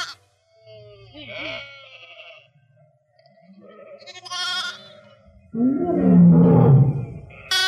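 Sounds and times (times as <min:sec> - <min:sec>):
lion roaring: 0:05.2 - 0:07.5.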